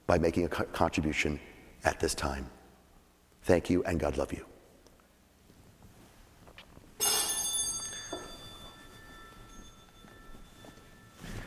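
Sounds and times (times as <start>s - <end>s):
speech: 0.1s - 2.6s, 3.4s - 4.5s
bell ringing: 7.0s - 11.4s.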